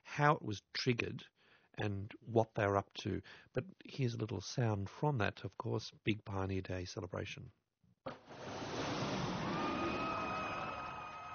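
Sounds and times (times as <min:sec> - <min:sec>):
speech: 0:00.2 - 0:07.6
jet flying by overhead: 0:08.4 - 0:11.3.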